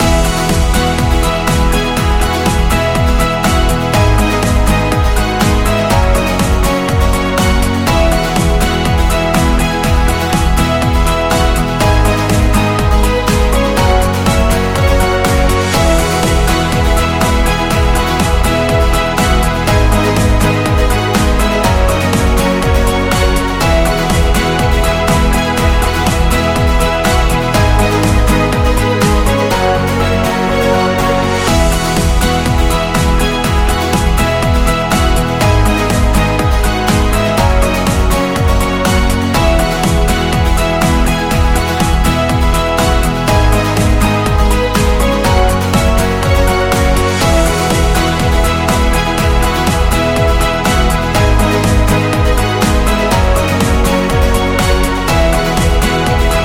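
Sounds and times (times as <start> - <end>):
motivational corporate music loop: 0.0 - 56.4.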